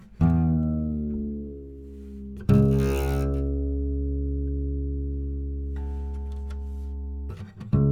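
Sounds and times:
guitar being detuned: 0:00.0 - 0:01.6, 0:02.2 - 0:04.8, 0:05.8 - 0:07.8.

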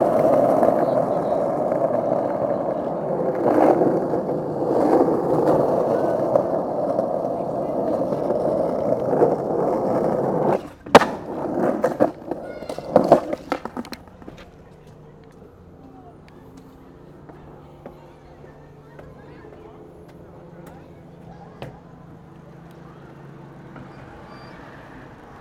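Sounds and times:
skateboard stopping and being lifted: 0:00.0 - 0:15.4
skateboard ride: 0:00.0 - 0:25.3.

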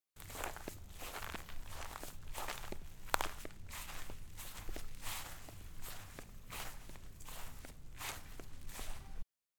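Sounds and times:
footsteps on grass: 0:00.2 - 0:09.2.

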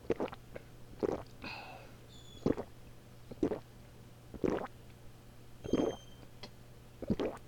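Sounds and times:
liquid glugging: 0:00.0 - 0:00.4, 0:01.0 - 0:01.3, 0:02.4 - 0:02.7, 0:03.3 - 0:03.7, 0:04.3 - 0:04.7, 0:05.6 - 0:06.0, 0:07.0 - 0:07.4.

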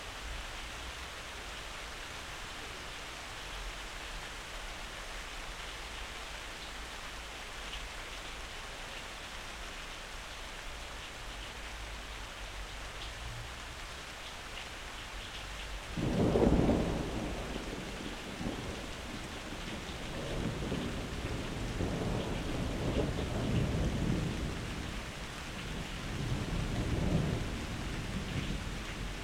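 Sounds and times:
rain: 0:00.0 - 0:29.2
thunder: 0:16.0 - 0:24.9, 0:25.7 - 0:29.2.

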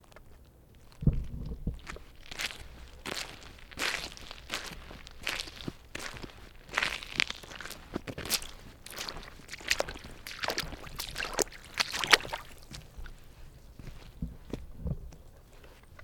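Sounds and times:
squishy footsteps walking in a puddle: 0:00.0 - 0:16.0.

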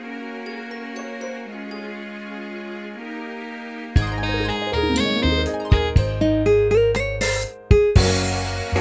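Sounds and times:
short musical intro: 0:04.0 - 0:08.7.

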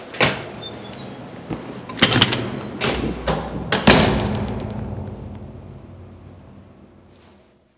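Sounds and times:
door opening and closing: 0:00.1 - 0:05.7.

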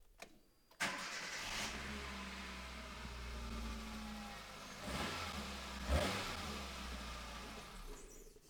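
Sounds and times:
car engine starting: 0:00.8 - 0:08.4.

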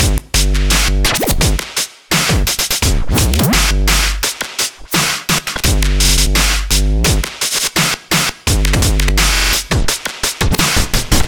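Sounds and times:
dubstep remix drumstep drum loop at 170: 0:00.0 - 0:11.2.

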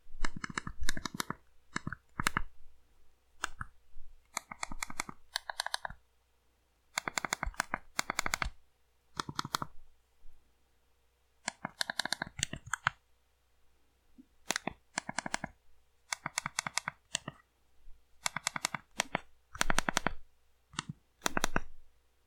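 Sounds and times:
texting on an old flip phone: 0:00.2 - 0:02.5, 0:04.3 - 0:06.0, 0:07.0 - 0:08.6, 0:09.2 - 0:09.7, 0:11.5 - 0:13.0, 0:14.5 - 0:15.5, 0:16.1 - 0:17.4, 0:18.2 - 0:20.2, 0:20.8 - 0:21.7.

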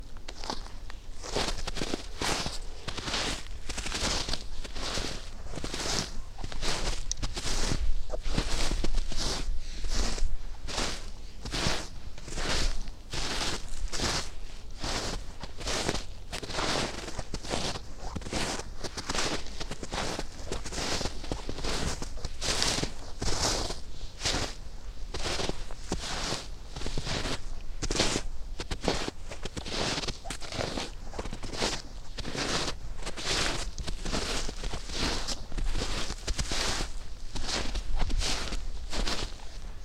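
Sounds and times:
footsteps walking slowly in snow: 0:00.0 - 0:39.8.

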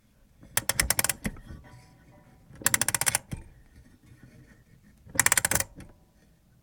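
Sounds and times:
clock winding: 0:00.5 - 0:01.4, 0:02.6 - 0:03.3, 0:05.1 - 0:05.8.

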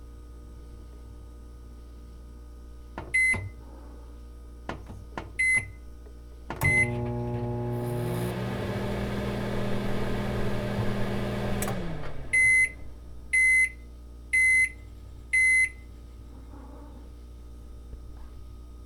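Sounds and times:
microwave cooking and running: 0:02.8 - 0:03.6, 0:04.6 - 0:15.8.

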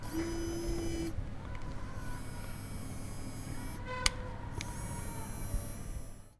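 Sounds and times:
camera: 0:00.0 - 0:06.3.

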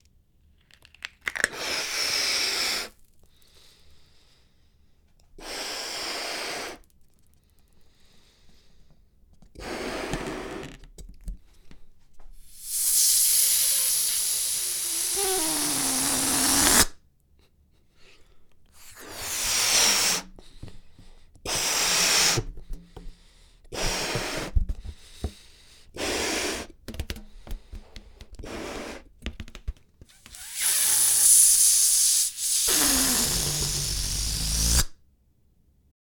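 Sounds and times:
balloon inflating and deflating: 0:01.4 - 0:03.0, 0:05.4 - 0:06.8, 0:09.6 - 0:10.9, 0:12.5 - 0:17.0, 0:18.8 - 0:29.2, 0:30.0 - 0:35.0.

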